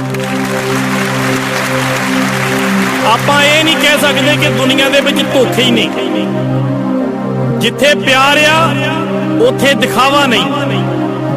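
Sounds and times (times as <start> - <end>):
audience at a stage show clapping: 0.0 - 6.0
speech: 3.1 - 6.6, 7.6 - 11.3.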